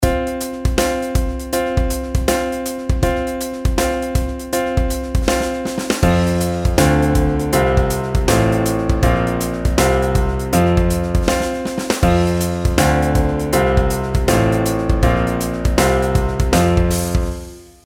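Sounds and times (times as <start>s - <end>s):
skipwise pitch patterns: 0.8s - 17.3s.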